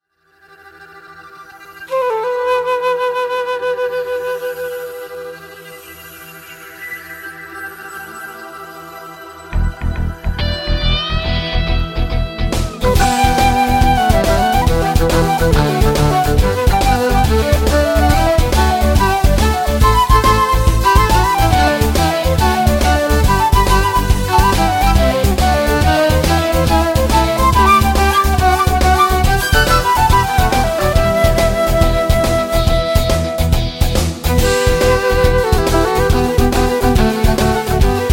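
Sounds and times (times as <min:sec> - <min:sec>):
violin: 0:00.3 - 0:06.5, 0:09.7 - 0:38.1
flute: 0:00.3 - 0:10.6, 0:12.5 - 0:38.1.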